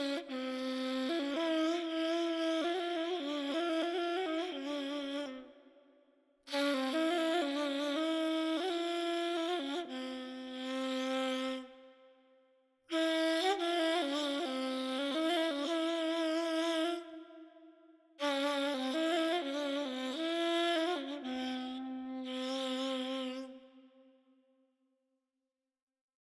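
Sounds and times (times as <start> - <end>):
ney playing Azerbaijani traditional music: 0.0 - 5.5, 6.5 - 11.8, 12.9 - 17.3, 18.2 - 23.6.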